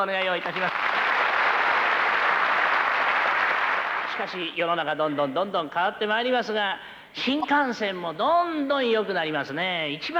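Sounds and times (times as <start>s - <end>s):
speech: 0.0s - 1.2s, 4.2s - 10.1s
audience applause as a performer comes on stage: 0.3s - 4.3s.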